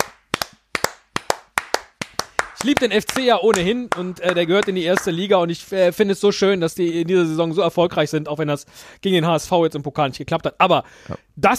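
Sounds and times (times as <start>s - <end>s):
applause: 0.0s - 5.3s
speech: 2.6s - 11.5s.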